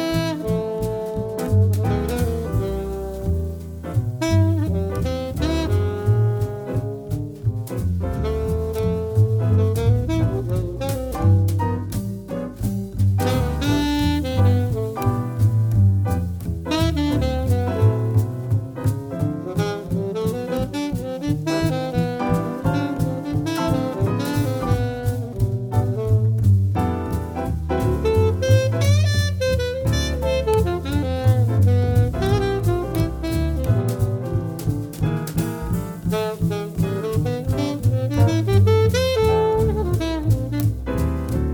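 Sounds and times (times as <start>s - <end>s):
piano quartet playing: 0.0s - 41.5s.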